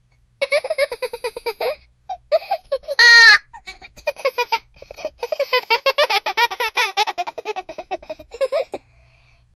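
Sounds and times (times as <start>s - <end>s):
child laughing jokingly: 0.4s - 8.8s.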